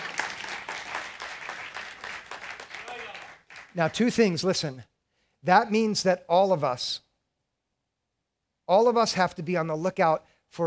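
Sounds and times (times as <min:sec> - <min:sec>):
audience clapping: 0:00.0 - 0:04.4
speech: 0:03.7 - 0:07.0, 0:08.7 - 0:10.6.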